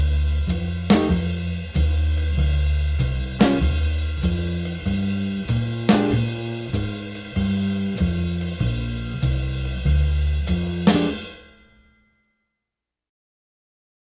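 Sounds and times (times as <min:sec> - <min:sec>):
improvised two-bar solos: 0:00.0 - 0:11.3.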